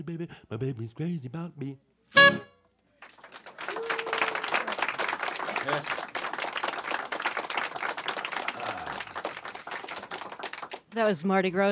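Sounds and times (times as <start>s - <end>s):
speech: 0.0s - 2.5s, 5.6s - 6.0s, 11.0s - 11.7s
studio audience applauding after a live jazz song: 3.0s - 11.1s.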